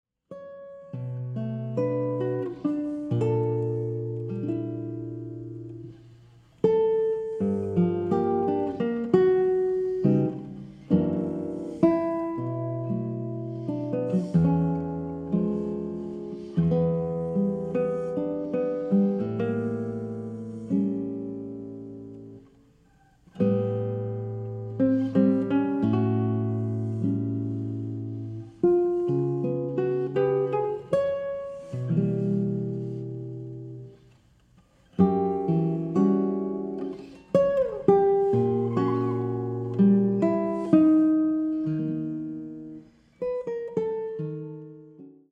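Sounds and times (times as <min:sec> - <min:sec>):
acoustic guitar: 0:00.3 - 0:45.2.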